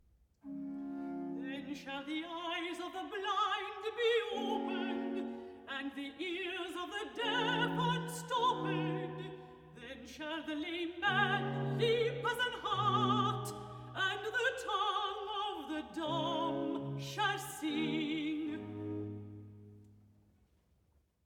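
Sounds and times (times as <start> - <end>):
soprano singing recitative: 0.5 - 19.4.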